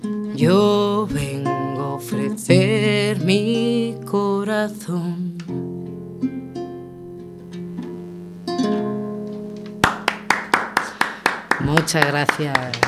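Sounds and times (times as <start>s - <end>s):
speech: 0.0s - 5.3s, 11.9s - 12.8s
one person clapping alone: 9.3s - 12.8s.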